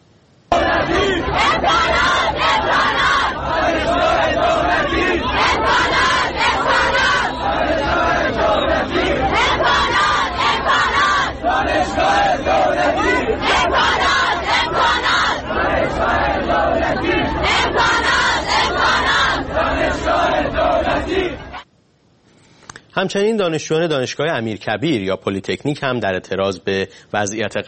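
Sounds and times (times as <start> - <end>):
crowd of Hormozgan State University students chanting and shouting in protest: 0.5 - 21.6
speech: 23.0 - 27.6.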